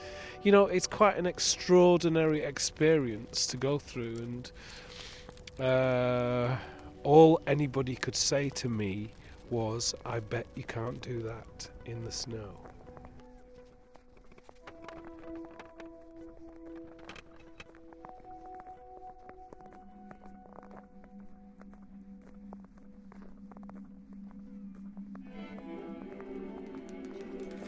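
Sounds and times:
speech: 0.4 - 4.8, 5.6 - 12.7
walking stick run along metal railings: 12.3 - 19.7, 23.6 - 27.6.

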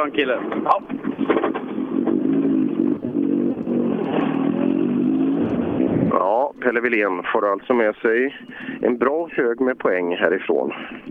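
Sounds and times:
speech: 0.0 - 1.4, 6.2 - 11.0
rattling clatter: 0.4 - 2.2
racing car engine driving past: 0.5 - 6.7.

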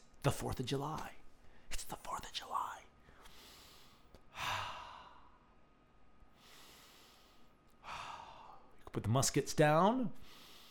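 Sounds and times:
speech: 0.2 - 1.2, 9.0 - 10.4
deep slow breaths in through the nose and out through the mouth: 3.0 - 5.4, 6.3 - 8.7, 10.2 - 10.6.

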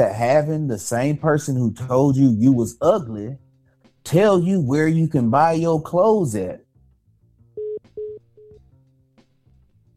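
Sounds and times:
speech: 0.0 - 3.4, 4.0 - 6.6
telephone line signal beeps after a caller drops off the line: 7.6 - 8.6.

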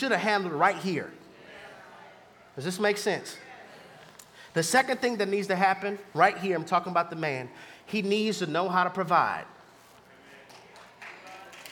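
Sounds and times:
speech: 0.0 - 1.2, 2.6 - 3.5, 4.5 - 9.6
a few people clapping sparsely: 10.4 - 11.7.

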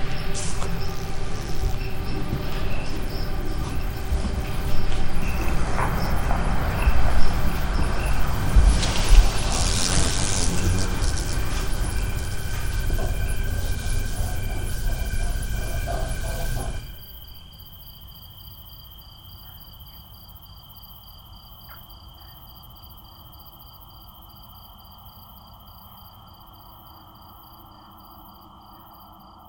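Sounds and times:
bright bursts on the night of San Juan: 0.0 - 17.0
steady high insect-like tones: 0.0 - 17.7
dense rumbling crowd noise on the night of San Juan: 0.2 - 16.9.

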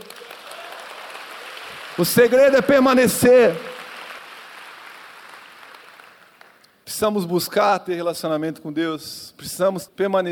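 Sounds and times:
audience applause: 0.0 - 6.6
speech: 2.0 - 3.7, 7.0 - 10.2.

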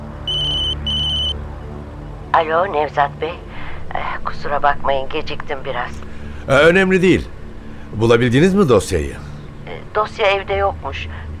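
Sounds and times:
telephone ringing in electronic trills: 0.3 - 1.4
speech: 2.3 - 11.2.

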